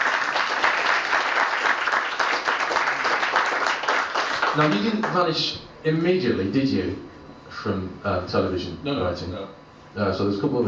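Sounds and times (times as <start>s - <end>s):
crowd applauding: 0.0s - 5.2s
speech: 4.6s - 10.6s.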